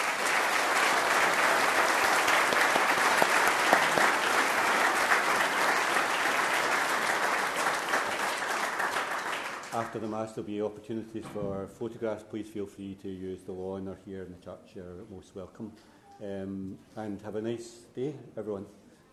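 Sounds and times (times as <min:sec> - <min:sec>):
church audience applause: 0:00.0 - 0:09.9
speech: 0:09.9 - 0:18.8.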